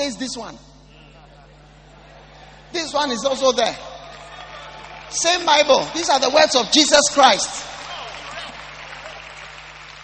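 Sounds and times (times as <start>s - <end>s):
speech: 0.0s - 0.7s, 2.7s - 4.0s, 5.1s - 7.8s
audience clapping: 4.0s - 10.0s.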